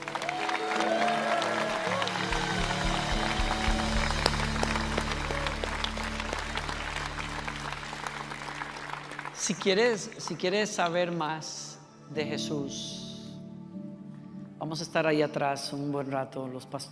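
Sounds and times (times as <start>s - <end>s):
audience applause: 0.0s - 10.4s
speech: 9.5s - 13.0s, 14.7s - 16.9s.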